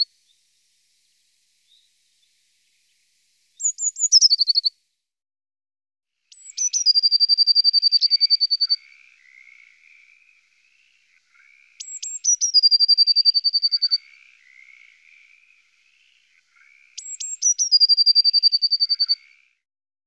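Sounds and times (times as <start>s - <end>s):
Eurasian blue tit giving high thin calls: 3.6s - 4.7s, 6.3s - 19.4s.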